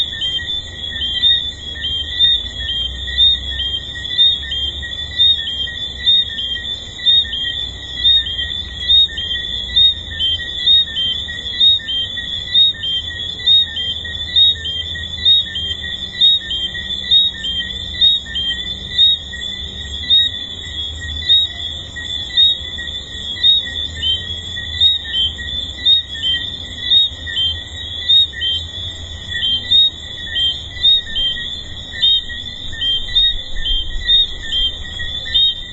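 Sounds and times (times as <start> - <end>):
tree frogs calling: 0.0 - 35.7.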